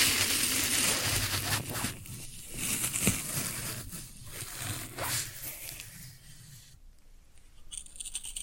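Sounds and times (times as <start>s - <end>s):
floral foam handled and pressed, crunching: 0.0s - 5.9s.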